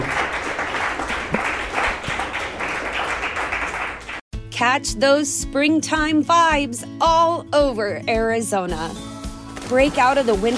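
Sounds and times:
audience applause: 0.0 - 4.2
speech: 4.6 - 9.1, 9.7 - 10.5.

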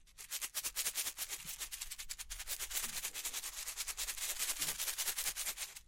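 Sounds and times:
bling bling triggers rubbing and scratching: 0.3 - 5.8.

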